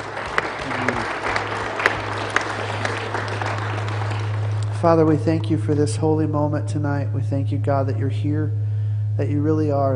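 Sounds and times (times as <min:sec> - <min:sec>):
church worship service congregation applauding: 0:00.0 - 0:06.5
low hum: 0:00.0 - 0:09.9
speech: 0:04.8 - 0:08.6, 0:09.2 - 0:09.9.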